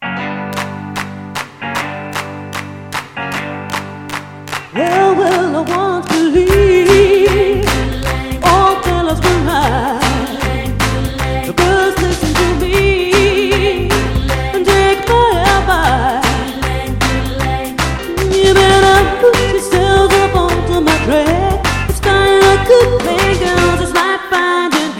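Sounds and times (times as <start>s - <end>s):
sweet Motown soul music: 0.0s - 24.9s.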